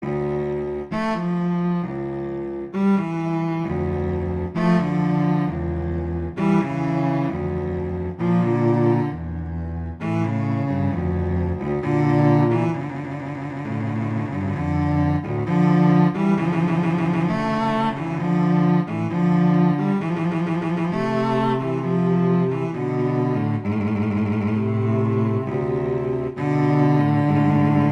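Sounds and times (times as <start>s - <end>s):
slow classical piece: 0.0s - 27.9s.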